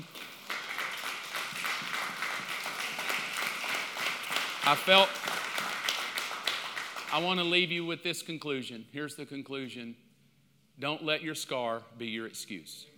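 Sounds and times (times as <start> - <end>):
audience clapping: 0.0 - 7.5
speech: 4.7 - 5.2, 7.1 - 10.0, 10.8 - 12.9.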